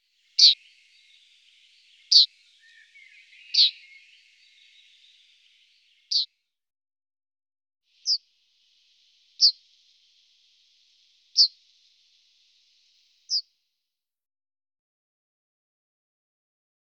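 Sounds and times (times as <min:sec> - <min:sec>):
Yellowhammer calls: 0:00.0 - 0:06.3, 0:08.0 - 0:13.4
faint high hiss: 0:00.0 - 0:06.3, 0:07.9 - 0:13.8.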